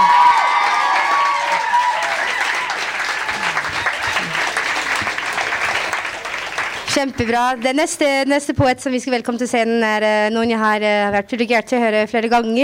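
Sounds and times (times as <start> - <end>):
audience applause after a poem: 0.0 - 7.7
speech: 7.0 - 12.6.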